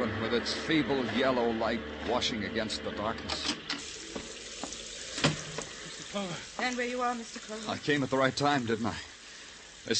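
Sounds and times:
speech: 0.3s - 3.6s, 6.2s - 9.1s
rain at night: 3.8s - 9.9s.

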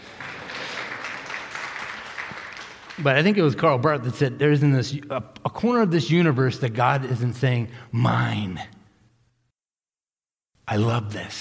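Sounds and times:
audience applause: 0.0s - 3.1s
speech: 3.0s - 8.8s, 10.7s - 11.4s.

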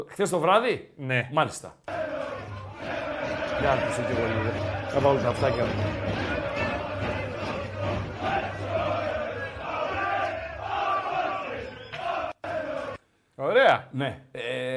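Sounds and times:
speech: 0.0s - 2.0s, 3.6s - 6.2s, 13.5s - 14.4s
football fans chanting slogans: 1.8s - 13.0s.

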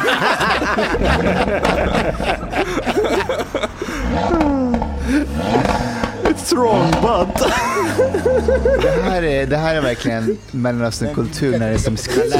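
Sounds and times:
laughter: 0.0s - 12.3s
speech: 0.1s - 2.3s, 6.6s - 12.3s
sports car engine revving loudly: 0.4s - 10.1s.

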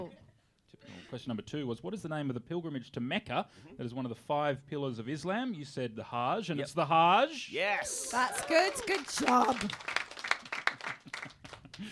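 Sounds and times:
speech: 1.1s - 10.0s
audience applause: 7.9s - 11.9s.

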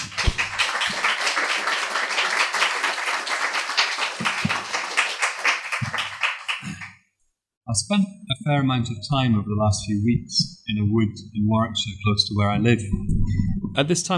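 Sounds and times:
audience applause greeting three authors at a book discussion: 0.0s - 7.0s
speech: 7.7s - 14.1s.

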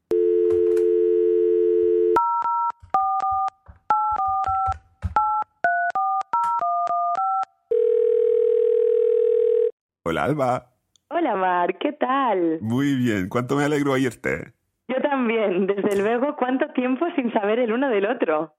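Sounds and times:
telephone dial tone: 0.1s - 9.8s
speech: 10.2s - 14.6s, 15.2s - 18.5s.

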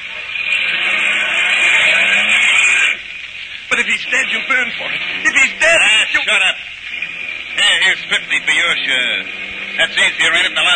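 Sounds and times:
getaway car engine driving off after a robbery: 0.0s - 10.7s
speech: 3.8s - 6.8s, 7.6s - 10.7s.

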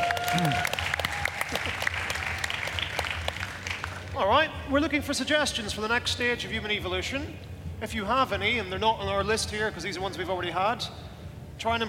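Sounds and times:
audience applause: 0.0s - 4.1s
speech: 0.4s - 0.7s, 4.2s - 11.0s, 11.6s - 11.8s.

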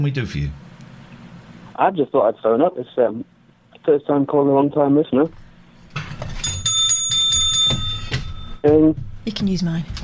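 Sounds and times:
speech: 0.0s - 0.7s, 1.8s - 5.4s, 8.6s - 10.0s
bicycle bell ringing: 6.4s - 8.7s.

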